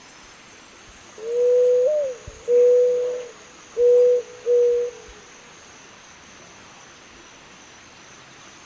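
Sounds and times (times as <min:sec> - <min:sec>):
Zenaida dove giving low even coos: 0:01.2 - 0:05.1.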